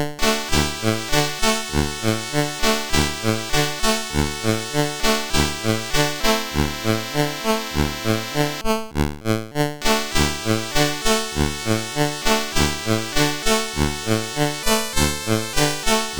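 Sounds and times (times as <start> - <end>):
SID CSG8580R5 chip music: 0.2 - 8.6, 9.8 - 16.1.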